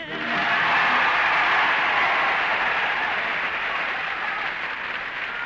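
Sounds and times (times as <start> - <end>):
studio audience applause at a televised talent contest: 0.2 - 5.4.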